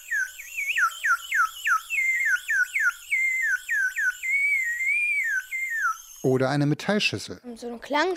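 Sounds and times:
bird whistles: 0:00.0 - 0:06.4
speech: 0:06.2 - 0:08.1.

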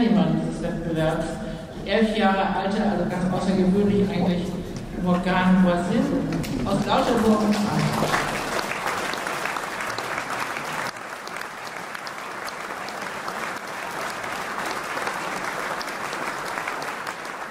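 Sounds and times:
speech: 0:00.8 - 0:08.5
audience applause after prize announcement: 0:06.4 - 0:17.5.

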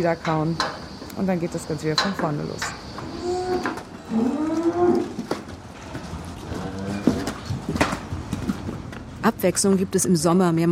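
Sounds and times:
speech: 0:00.0 - 0:02.8, 0:03.5 - 0:05.1, 0:09.2 - 0:10.7
dairy cow mooing in barn: 0:03.1 - 0:05.2, 0:06.4 - 0:07.3.

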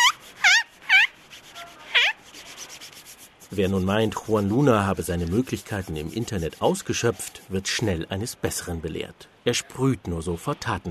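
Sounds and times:
cloth rubbed briskly over a shoe: 0:00.0 - 0:02.2
speech: 0:03.5 - 0:10.8.

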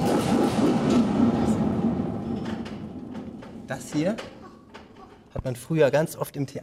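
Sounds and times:
theatre thunder sheet struck with a stick: 0:00.0 - 0:03.8
speech: 0:03.9 - 0:04.4, 0:05.4 - 0:06.6.

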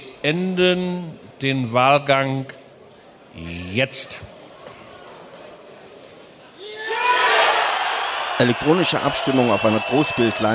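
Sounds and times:
speech: 0:00.2 - 0:02.6, 0:03.4 - 0:04.3, 0:08.4 - 0:10.5
crowd cheering: 0:06.6 - 0:10.5
convention hall crowd applauding: 0:07.0 - 0:10.5.

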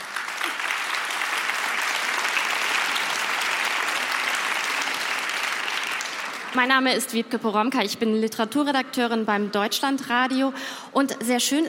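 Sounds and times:
audience applause: 0:00.0 - 0:06.8
speech: 0:06.5 - 0:11.6.

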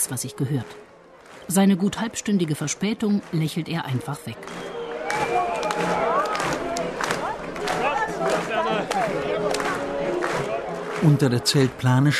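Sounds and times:
speech: 0:00.0 - 0:00.9, 0:01.5 - 0:06.1, 0:11.0 - 0:12.1
crowd clapping along: 0:00.2 - 0:12.1
crowd cheering and shouting bravo: 0:04.4 - 0:11.4.

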